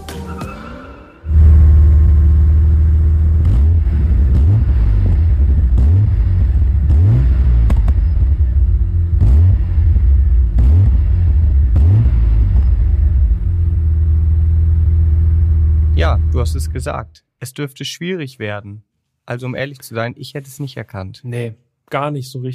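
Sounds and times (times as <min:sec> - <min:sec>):
Lotus Omega car engine revving: 0:01.3 - 0:16.8
speech: 0:16.4 - 0:22.5.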